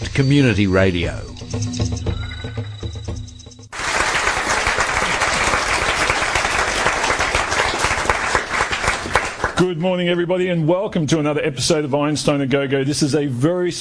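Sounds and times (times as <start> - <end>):
speech: 0.2 - 2.1, 9.6 - 13.8
live audience applause in a radio station's performance space: 3.7 - 9.6.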